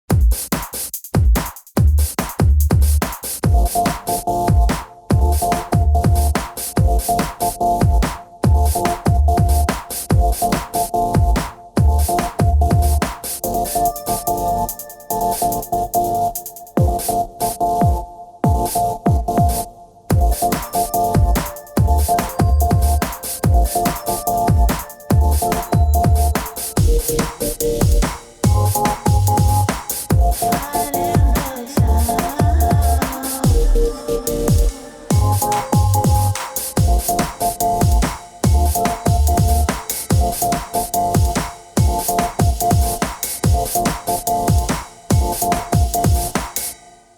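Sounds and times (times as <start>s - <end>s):
music beat: 0.1s - 46.8s.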